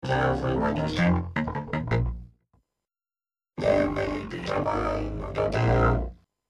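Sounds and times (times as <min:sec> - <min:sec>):
vocoder voice: 0:00.0 - 0:01.9, 0:03.6 - 0:06.2.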